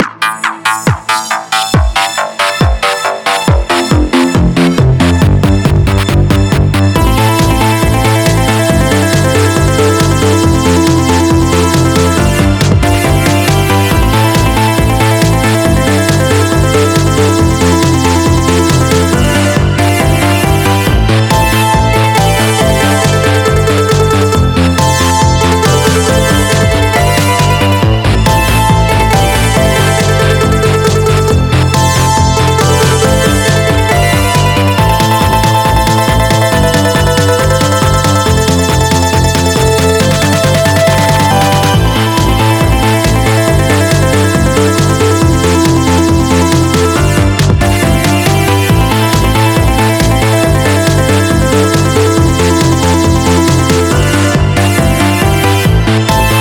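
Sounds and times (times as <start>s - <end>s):
dark battle EDM music: 0.0s - 56.4s.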